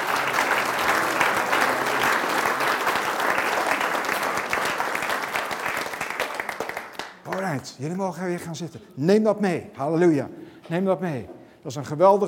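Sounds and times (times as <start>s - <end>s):
audience applauding: 0.0s - 7.6s
speech: 7.7s - 12.2s.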